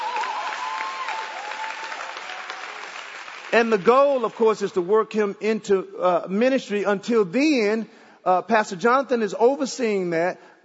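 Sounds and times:
audience hand clapping: 0.0s - 4.6s
speech: 3.5s - 10.6s.

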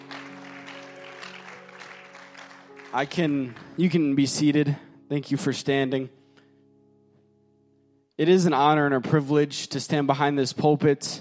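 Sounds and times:
audience clapping hands: 0.0s - 4.2s
speech: 2.9s - 6.2s, 8.2s - 11.1s.

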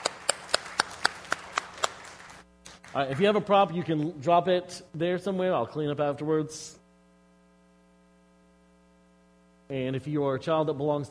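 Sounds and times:
hand claps in applause for volunteers: 0.0s - 4.1s
speech: 2.9s - 6.8s, 9.7s - 11.0s.

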